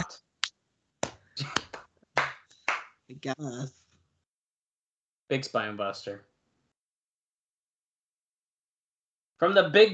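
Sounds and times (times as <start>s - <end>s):
sparse clapping from front row: 0.4s - 3.0s
speech: 3.2s - 3.8s, 5.3s - 6.3s, 9.4s - 9.9s.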